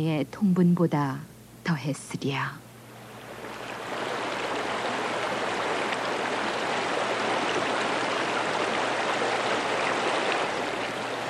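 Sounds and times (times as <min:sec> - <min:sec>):
speech: 0:00.0 - 0:02.6
rushing mountain stream water: 0:03.1 - 0:11.2.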